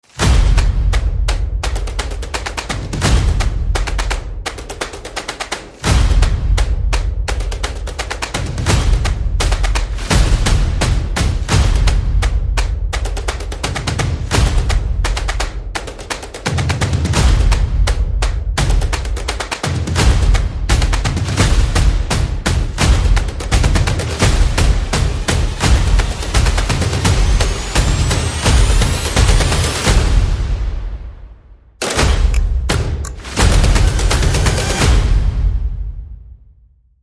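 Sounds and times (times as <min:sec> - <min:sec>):
percussion: 0:00.0 - 0:36.6.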